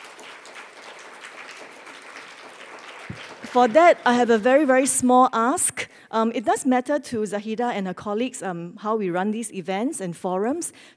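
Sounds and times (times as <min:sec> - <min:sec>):
round of applause: 0:00.0 - 0:05.0
speech: 0:03.1 - 0:10.9.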